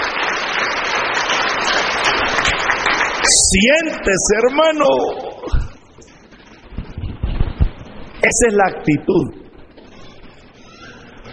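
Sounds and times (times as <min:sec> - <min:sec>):
audience applauding: 0:00.0 - 0:05.1
speech: 0:03.5 - 0:05.6, 0:08.2 - 0:09.4.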